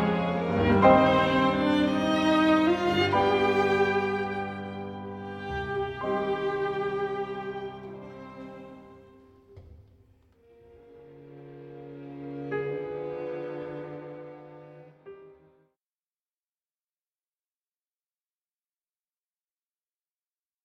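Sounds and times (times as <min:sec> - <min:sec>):
piano: 0:00.0 - 0:15.8.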